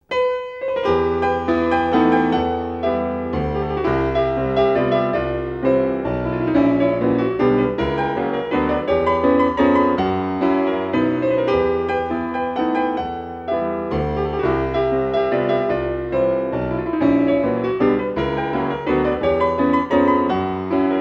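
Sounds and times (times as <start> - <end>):
piano four hands waltz: 0.0 - 20.9.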